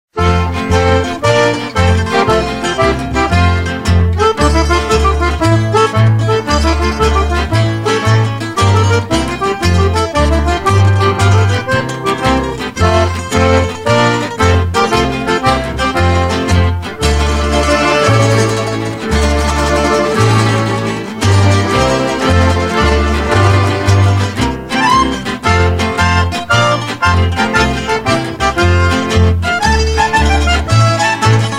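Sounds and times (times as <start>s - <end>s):
instrumental music: 0.1s - 31.5s.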